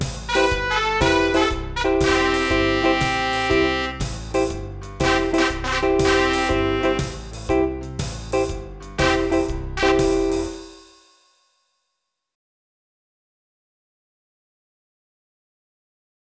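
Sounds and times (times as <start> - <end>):
concerto music: 0.0 - 10.8.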